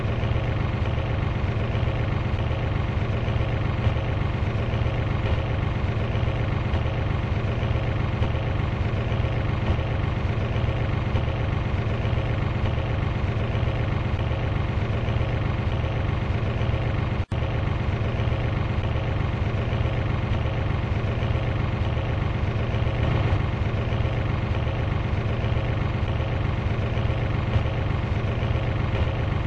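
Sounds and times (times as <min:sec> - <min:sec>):
boat engine: 0:00.0 - 0:29.4.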